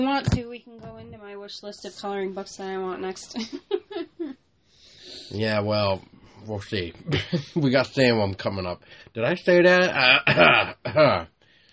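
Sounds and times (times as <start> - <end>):
speech: 0.0 - 4.0, 5.3 - 11.3
person coughing: 10.0 - 11.3.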